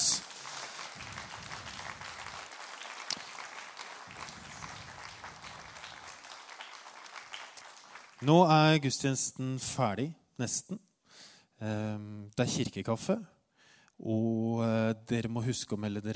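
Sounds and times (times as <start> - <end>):
crowd applauding: 0.0 - 8.7
speech: 8.2 - 10.9, 11.6 - 13.4, 14.0 - 16.1.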